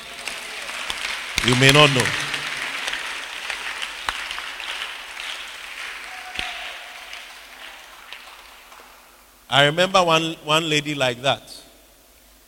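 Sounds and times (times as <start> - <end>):
audience clapping: 0.0 - 9.3
speech: 1.4 - 2.3, 9.5 - 11.5.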